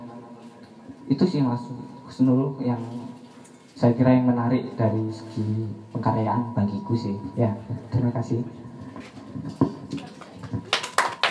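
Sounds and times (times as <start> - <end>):
speech: 1.1 - 3.1, 3.8 - 9.6
applause: 9.9 - 11.2.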